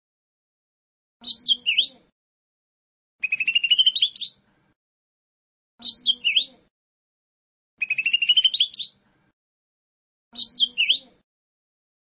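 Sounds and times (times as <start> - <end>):
bird song: 1.2 - 2.0, 3.2 - 4.7, 5.8 - 6.7, 7.8 - 9.3, 10.3 - 11.2.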